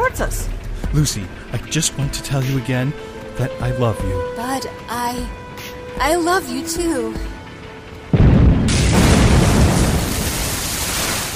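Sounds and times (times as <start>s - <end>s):
speech: 0.1s - 5.4s, 6.0s - 7.4s
giant whale exploding: 8.1s - 11.3s.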